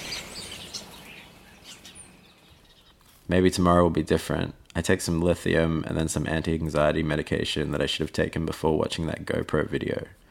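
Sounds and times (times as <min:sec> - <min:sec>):
birds singing at dawn: 0:00.0 - 0:03.1
speech: 0:03.3 - 0:10.2.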